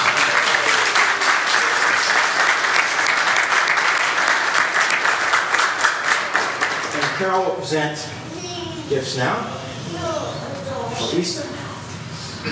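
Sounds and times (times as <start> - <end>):
church congregation applauding after a baptism: 0.0 - 7.5
speech: 7.2 - 8.2, 8.9 - 10.0, 11.0 - 11.6.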